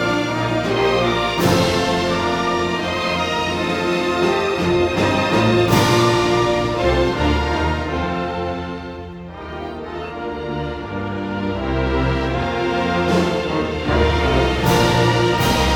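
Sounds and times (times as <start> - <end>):
all-state orchestra playing a national anthem: 0.0 - 15.7.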